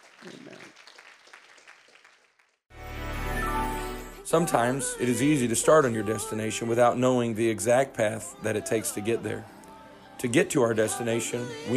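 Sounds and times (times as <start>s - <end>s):
audience clapping hands: 0.0s - 2.7s
speech: 4.3s - 9.6s, 10.2s - 11.7s.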